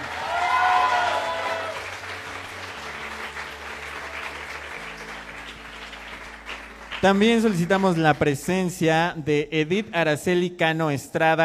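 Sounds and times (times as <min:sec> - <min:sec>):
crowd clapping: 0:00.0 - 0:09.2
low droning musical tone: 0:00.0 - 0:10.0
speech: 0:07.0 - 0:11.4.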